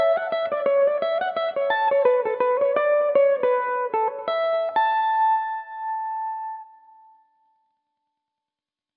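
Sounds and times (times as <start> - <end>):
Irish mandolin tunes in A mixolydian: 0.0 - 5.7.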